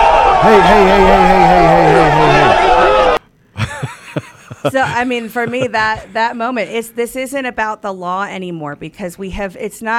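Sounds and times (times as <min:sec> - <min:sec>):
crowd cheering: 0:00.0 - 0:03.2
speech: 0:00.4 - 0:02.7, 0:04.6 - 0:09.9
laughter: 0:01.8 - 0:06.3.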